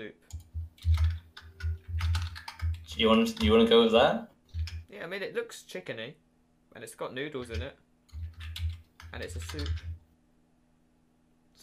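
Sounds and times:
computer keyboard typing: 0.3s - 4.9s, 7.4s - 10.0s
speech: 3.0s - 4.3s, 5.0s - 6.2s, 6.8s - 7.8s, 9.1s - 9.9s.

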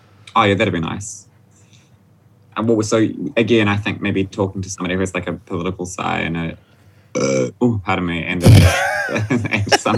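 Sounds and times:
speech: 0.4s - 1.3s, 2.6s - 9.9s
burp after drinking wine: 7.2s - 7.5s.

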